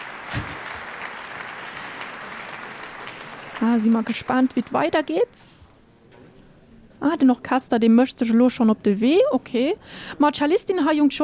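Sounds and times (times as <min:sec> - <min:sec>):
concert audience applause after a cello soloist's performance with an orchestra: 0:00.0 - 0:05.4
speech: 0:03.6 - 0:05.6, 0:07.0 - 0:11.2.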